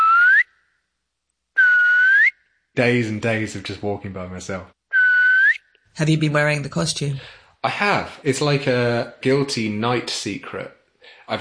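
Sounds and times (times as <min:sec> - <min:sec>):
loud clear human whistle echoing through a pine forest: 0:00.0 - 0:00.5, 0:01.6 - 0:02.4, 0:04.9 - 0:05.7
speech: 0:02.8 - 0:04.8, 0:06.0 - 0:11.3.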